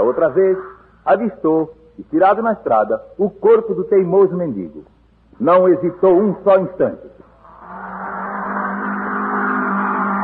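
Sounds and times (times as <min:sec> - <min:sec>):
speech: 0:00.1 - 0:08.0
car engine accelerating: 0:07.4 - 0:10.2.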